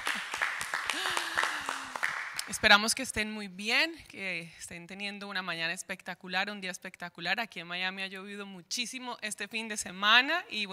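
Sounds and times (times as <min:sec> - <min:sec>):
scattered clapping from a small group: 0:00.0 - 0:02.6
speech: 0:02.6 - 0:10.7.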